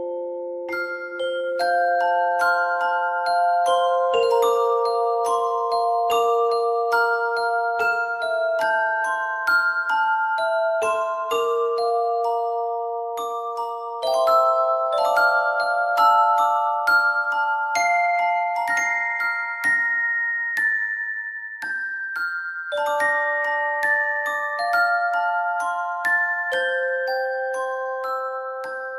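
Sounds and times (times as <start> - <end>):
music box: 0.0 - 28.9.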